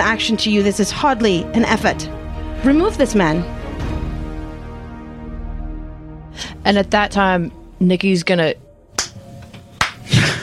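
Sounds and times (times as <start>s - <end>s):
speech: 0.1s - 3.6s, 6.6s - 8.6s
slow hand clapping: 9.0s - 9.2s, 9.8s - 10.1s.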